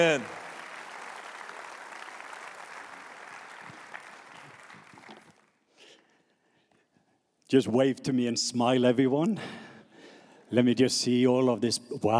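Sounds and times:
speech: 0.0s - 0.4s, 7.5s - 9.6s, 10.5s - 12.1s
church congregation applauding to welcome a guest speaker: 0.0s - 5.5s.

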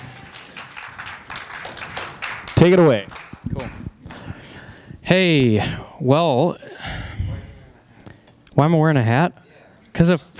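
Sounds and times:
crowd applause: 0.0s - 4.4s
speech: 2.6s - 3.8s, 5.1s - 7.0s, 8.6s - 9.4s, 10.0s - 10.3s.

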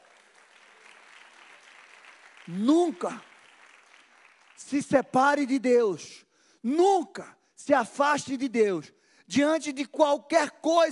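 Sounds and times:
audience applause: 0.0s - 4.9s
speech: 2.5s - 3.3s, 4.6s - 10.9s.

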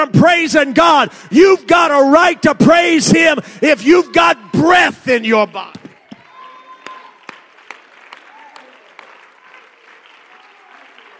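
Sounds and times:
speech: 0.0s - 5.8s
audience clapping: 5.7s - 11.1s.

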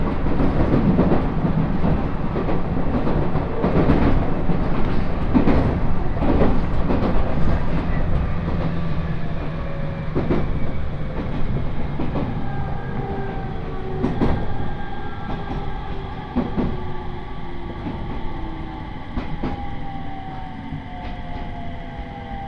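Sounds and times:
rail-joint clacks: 0.0s - 9.0s, 10.1s - 14.7s, 15.3s - 16.9s
train car rumble on the Uetsu Main Line: 0.0s - 22.4s.

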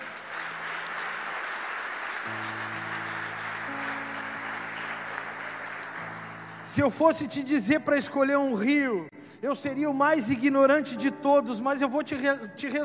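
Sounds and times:
audience applauding: 0.0s - 7.2s
speech: 6.7s - 12.8s.

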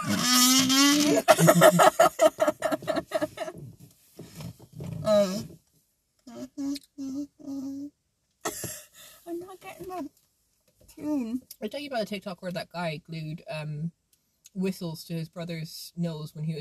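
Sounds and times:
burping into a kazoo: 0.0s - 1.5s
laughter: 1.0s - 3.6s
speech: 1.4s - 2.3s, 12.0s - 14.0s, 14.6s - 16.6s.

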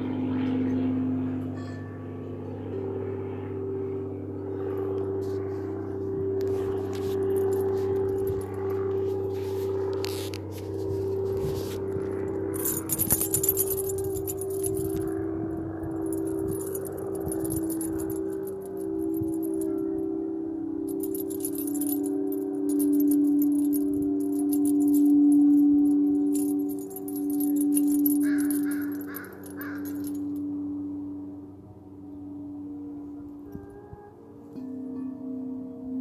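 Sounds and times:
singing bowls humming: 0.0s - 36.0s
bright metallic jingles: 6.4s - 31.4s.

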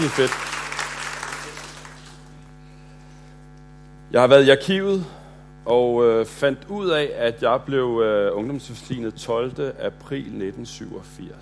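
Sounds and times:
speech: 0.0s - 0.6s, 4.1s - 11.4s
audience applause for young people being congratulated: 0.0s - 2.5s.

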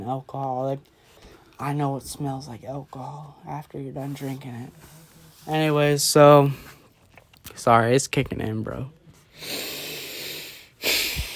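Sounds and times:
speech: 0.0s - 1.0s, 1.6s - 6.8s, 7.5s - 9.7s
heavy breathing from a man who has been drinking alcohol: 9.3s - 11.3s.

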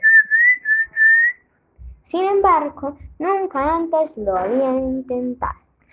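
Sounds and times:
whistled bird-like singing: 0.0s - 1.4s
soft low thump: 1.8s - 5.0s
speech: 2.1s - 5.9s.

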